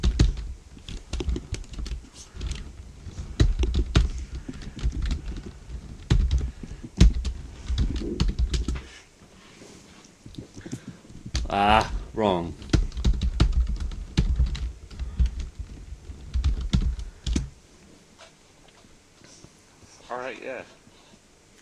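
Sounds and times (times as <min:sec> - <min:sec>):
computer keyboard typing: 0:00.0 - 0:08.8, 0:12.6 - 0:17.5
speech: 0:11.5 - 0:12.6.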